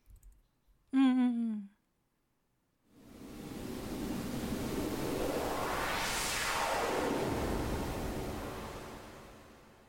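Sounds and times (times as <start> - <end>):
pink noise from an electronic instrument: 3.0 - 9.7
filtered noise band sweeping up to a bright hiss: 3.0 - 9.8.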